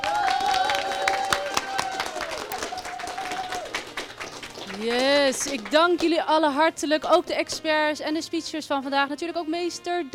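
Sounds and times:
audience applause: 0.0 - 5.8
speech: 4.8 - 10.1.

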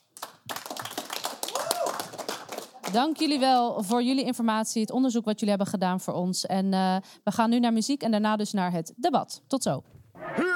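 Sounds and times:
small studio group clapping on a radio debate programme: 0.0 - 4.2
speech: 2.9 - 10.5.

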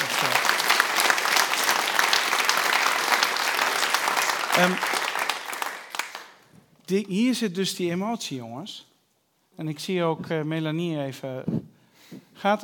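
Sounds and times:
crowd applauding: 0.0 - 6.4
speech: 4.6 - 4.9, 6.9 - 8.9, 9.6 - 11.7, 12.4 - 12.6.

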